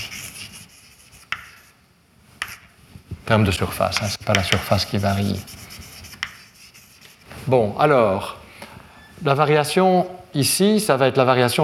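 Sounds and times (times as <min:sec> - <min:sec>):
faint scratching of writing: 0:00.0 - 0:01.7, 0:03.9 - 0:07.6
writing taps during a physics lecture: 0:00.1 - 0:01.6, 0:02.4 - 0:02.7, 0:03.9 - 0:07.2
speech: 0:03.3 - 0:05.6, 0:07.5 - 0:08.4, 0:09.2 - 0:11.6.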